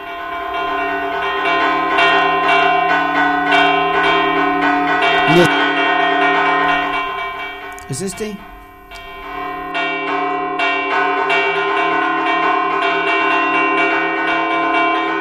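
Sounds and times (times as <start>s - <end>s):
church bells tolling a storm warning: 0.0s - 15.1s
speech: 5.3s - 5.6s, 7.9s - 8.5s.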